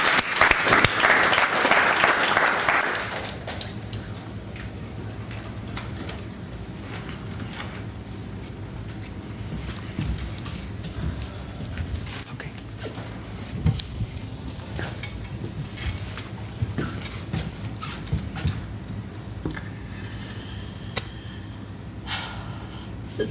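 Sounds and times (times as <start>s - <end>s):
audience applauding: 0.0s - 3.6s
room murmur: 0.0s - 23.2s.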